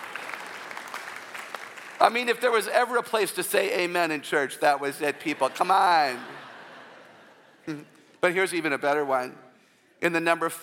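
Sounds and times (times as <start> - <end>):
audience applause: 0.0 - 2.2
speech: 2.0 - 6.4, 7.7 - 9.4, 10.0 - 10.6
laughter: 5.0 - 8.1.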